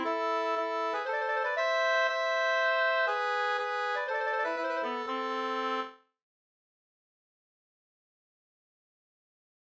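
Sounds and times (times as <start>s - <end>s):
polska folk dance tune: 0.0s - 6.0s.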